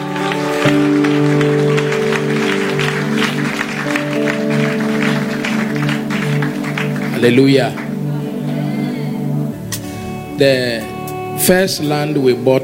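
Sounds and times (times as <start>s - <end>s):
church audience clapping: 0.0s - 8.6s
organ or keyboard chords: 0.0s - 12.6s
speech: 0.7s - 0.9s, 7.2s - 7.8s, 10.4s - 12.6s.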